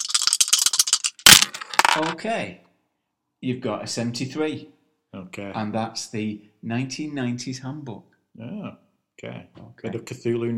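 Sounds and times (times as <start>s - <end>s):
dice rattling in a cup: 0.0s - 2.2s
speech: 2.0s - 2.7s, 3.4s - 10.5s.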